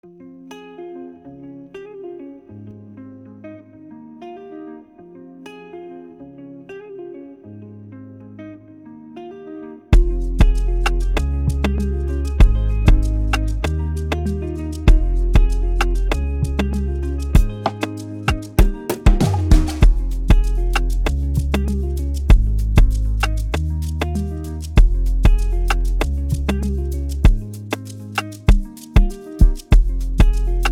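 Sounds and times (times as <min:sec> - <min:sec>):
music beat: 0:09.9 - 0:30.7.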